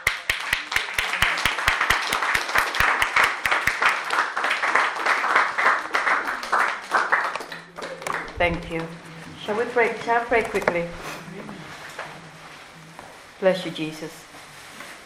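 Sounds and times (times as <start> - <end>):
applause: 0.0 - 8.9
speech: 8.4 - 11.1, 13.4 - 14.2.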